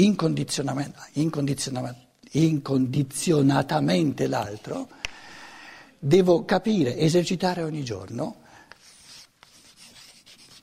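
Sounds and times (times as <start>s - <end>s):
speech: 0.0s - 5.0s, 6.0s - 8.4s
writing a sentence on a board during a lecture: 8.7s - 10.6s.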